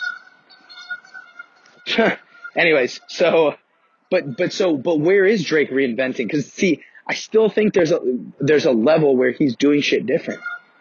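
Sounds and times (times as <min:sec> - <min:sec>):
geese honking: 0:00.0 - 0:07.0, 0:10.2 - 0:10.7
speech: 0:01.9 - 0:10.5.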